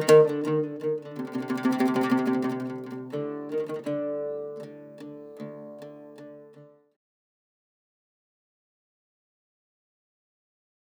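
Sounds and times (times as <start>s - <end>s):
oud playing: 0.0s - 6.8s.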